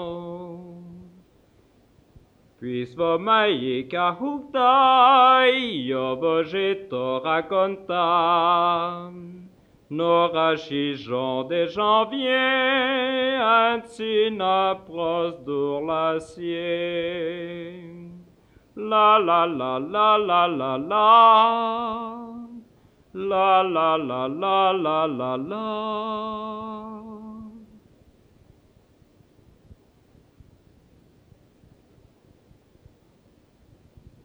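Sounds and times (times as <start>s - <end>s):
people singing songs in patois of Zinal Anniviers: 2.6s - 18.2s, 18.8s - 27.8s.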